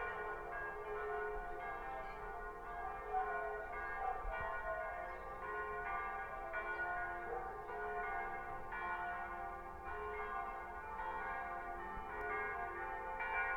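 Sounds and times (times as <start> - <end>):
Sunday church bells ringing: 0.0 - 13.5.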